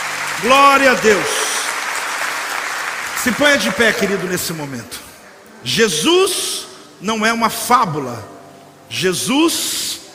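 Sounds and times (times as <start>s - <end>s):
audience applause: 0.0s - 4.8s
speech: 0.4s - 1.4s, 3.2s - 5.0s, 5.6s - 8.3s, 8.9s - 9.8s.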